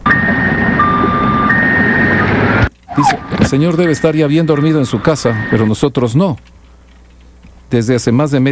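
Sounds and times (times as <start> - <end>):
car alarm wailing: 0.0 - 5.8
speech: 3.0 - 6.6, 7.7 - 8.4.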